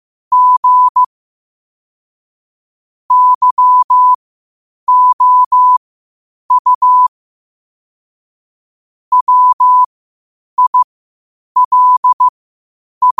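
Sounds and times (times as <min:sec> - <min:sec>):
morse code beeps at 5 wpm: 0:00.3 - 0:01.1, 0:03.1 - 0:04.2, 0:04.9 - 0:05.8, 0:06.5 - 0:07.1, 0:09.1 - 0:09.9, 0:10.6 - 0:10.9, 0:11.6 - 0:12.3.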